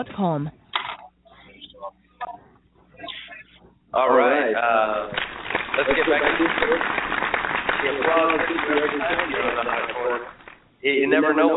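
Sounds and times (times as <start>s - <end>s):
speech: 0.0s - 0.6s, 3.9s - 7.0s, 7.8s - 11.5s
dense crackling applause: 5.1s - 10.6s.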